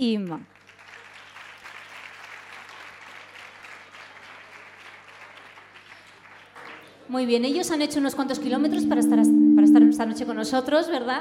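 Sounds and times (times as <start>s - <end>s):
speech: 0.0s - 0.6s, 7.1s - 11.2s
audience applause greeting singers at an evening music event: 0.5s - 7.1s.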